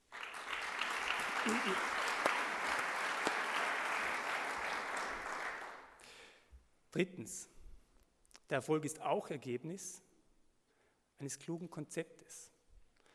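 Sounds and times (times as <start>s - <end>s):
crowd applause: 0.0s - 5.9s
speech: 1.4s - 2.0s, 6.9s - 7.6s, 8.5s - 10.1s, 11.2s - 12.5s.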